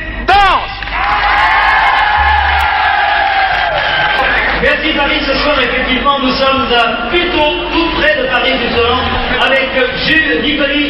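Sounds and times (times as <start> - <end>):
large crowd clapping: 0.8 - 5.2
speech: 5.2 - 10.8.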